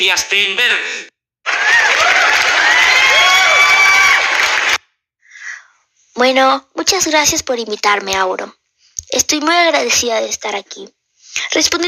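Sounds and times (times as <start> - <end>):
speech: 0.0 - 1.1, 6.2 - 11.8
audience applause: 1.5 - 4.8.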